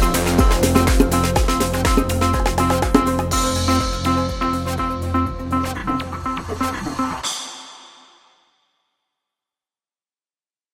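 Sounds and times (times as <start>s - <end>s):
bongos: 0.0s - 8.4s.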